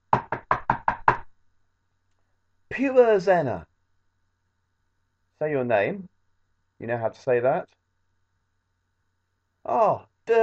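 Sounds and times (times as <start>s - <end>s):
knocking on a door: 0.1s - 1.3s
speech: 2.8s - 3.7s, 5.4s - 6.1s, 6.8s - 7.8s, 9.6s - 10.4s.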